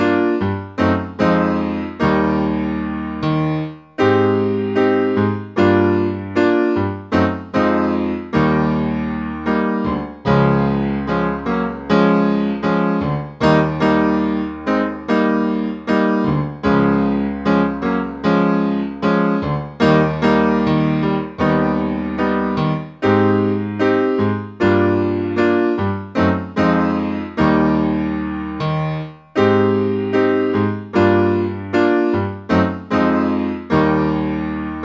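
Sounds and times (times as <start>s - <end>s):
improvised solo chords: 0.0s - 34.8s.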